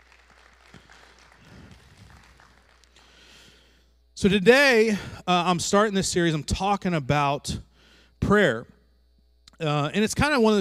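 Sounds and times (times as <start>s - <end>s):
crowd applauding: 0.0s - 3.2s
speech: 4.2s - 8.8s, 9.6s - 10.5s.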